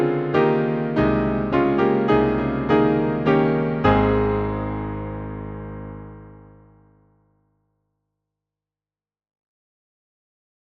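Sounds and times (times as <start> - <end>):
hymn on piano: 0.0 - 6.8.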